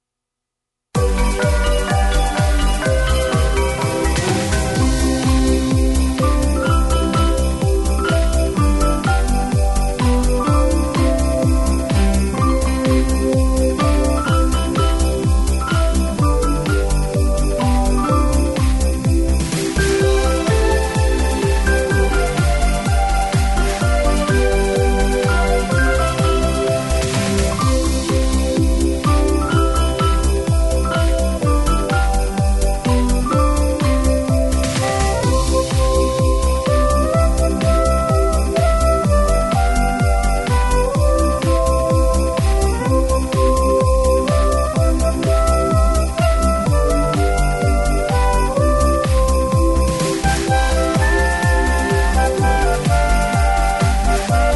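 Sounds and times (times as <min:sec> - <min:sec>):
bells: 0:01.0 - 0:54.5
square dance music: 0:01.0 - 0:54.5.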